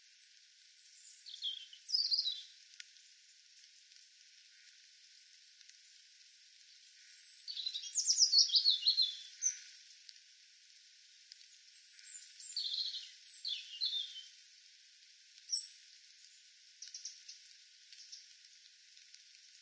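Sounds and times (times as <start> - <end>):
European robin Erithacus rubecula singing high tinkling phrases: 0.8 - 2.5, 7.0 - 9.7, 11.6 - 14.3, 15.5 - 15.8, 16.8 - 17.4.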